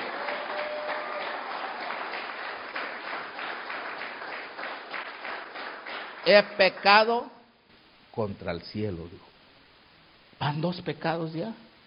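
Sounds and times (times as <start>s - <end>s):
audience clapping: 0.0s - 7.3s
speech: 6.3s - 7.4s, 8.2s - 9.3s, 10.4s - 11.6s.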